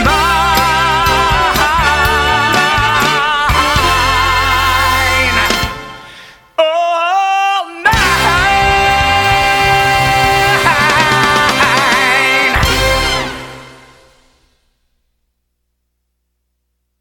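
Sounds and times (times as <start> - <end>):
person singing: 0.0 - 5.8, 6.5 - 13.6.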